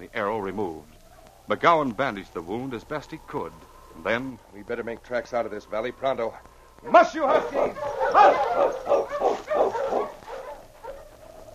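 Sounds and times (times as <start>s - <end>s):
speech: 0.1s - 0.9s, 1.5s - 10.0s
dog barking: 6.9s - 11.5s.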